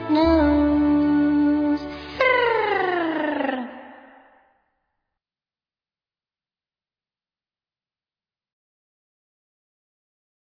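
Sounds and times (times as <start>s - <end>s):
song: 0.0s - 4.3s.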